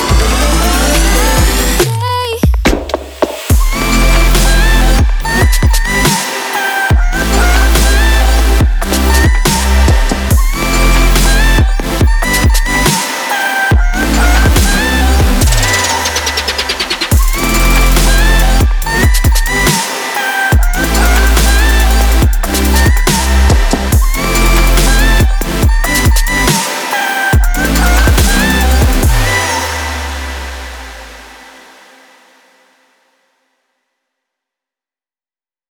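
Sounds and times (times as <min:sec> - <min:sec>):
dubstep future bass music: 0:00.0 - 0:31.6.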